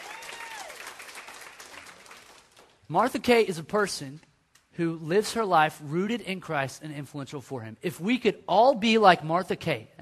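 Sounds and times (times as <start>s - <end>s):
audience clapping at a church-style talk: 0.0s - 2.9s
speech: 2.9s - 10.0s.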